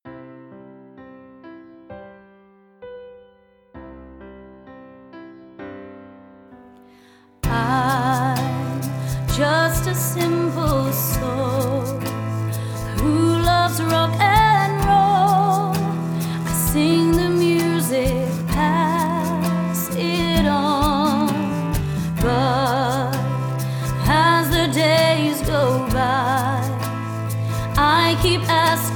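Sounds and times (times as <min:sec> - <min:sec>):
vocals: 0:07.4 - 0:28.9.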